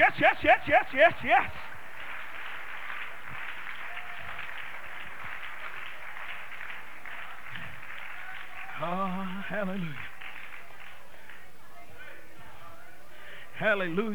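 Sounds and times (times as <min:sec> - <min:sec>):
speech: 0:00.0 - 0:01.7, 0:09.5 - 0:10.1, 0:13.6 - 0:14.1
laughter: 0:00.0 - 0:01.8, 0:08.8 - 0:10.1
audience clapping hands: 0:00.0 - 0:12.2.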